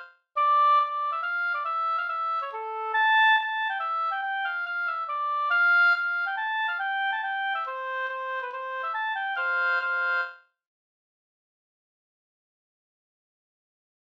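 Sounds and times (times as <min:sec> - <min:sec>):
mazurka: 0:00.0 - 0:10.4.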